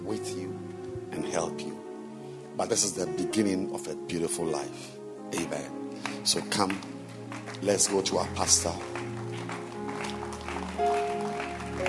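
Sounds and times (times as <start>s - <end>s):
speech: 0.1s - 1.9s, 2.6s - 9.1s
audience clapping hands: 5.4s - 11.8s.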